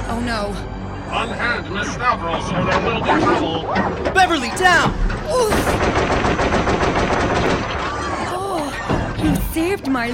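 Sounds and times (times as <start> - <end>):
speech: 0.2 - 7.8, 9.2 - 10.1
robot shooting a wall: 5.6 - 8.1.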